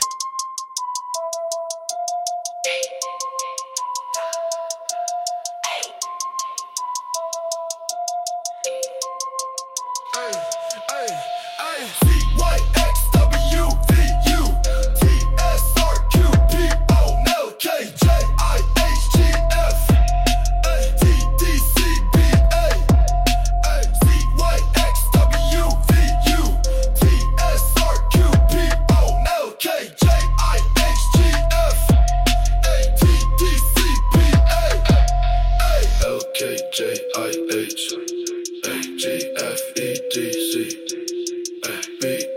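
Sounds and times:
trap mix: 0.0 - 42.3.

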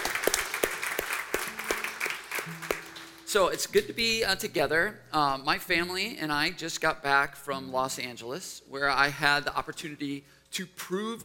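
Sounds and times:
crowd applauding the band: 0.0 - 3.4
speech: 3.3 - 11.2.

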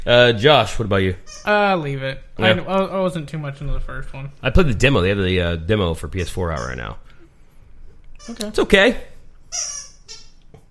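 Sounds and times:
speech: 0.0 - 7.1, 8.2 - 9.8
squeaky toy squeaking as a dog chews it: 1.2 - 1.7, 6.2 - 6.9, 8.2 - 8.6, 9.4 - 10.5.

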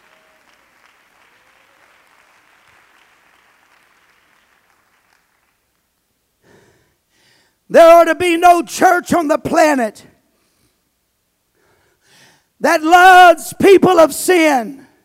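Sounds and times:
audience clapping: 0.0 - 6.1
speech: 7.7 - 10.1, 12.6 - 14.8.

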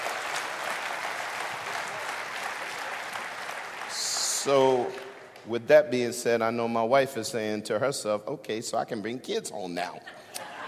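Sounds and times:
crowd applauding: 0.0 - 5.5
speech: 4.4 - 10.2
laughter: 10.0 - 10.6.

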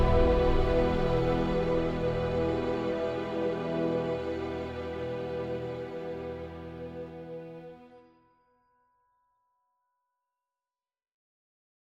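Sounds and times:
western drama music: 0.0 - 8.0.

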